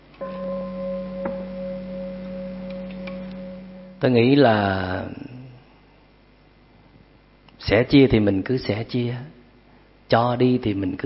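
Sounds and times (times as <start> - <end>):
bell ringing: 0.2 - 4.4
speech: 4.0 - 5.3, 7.7 - 9.4, 10.1 - 11.0.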